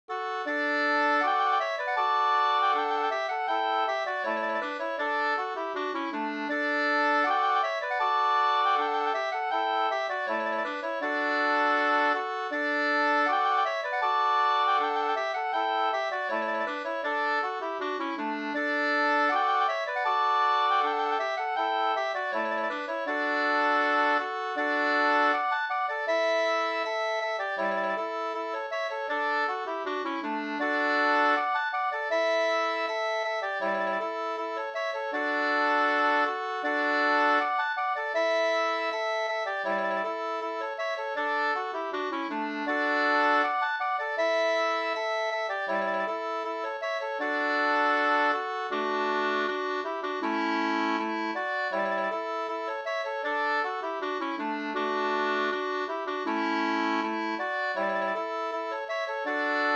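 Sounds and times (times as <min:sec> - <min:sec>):
folk walking tune: 0:00.1 - 0:59.7.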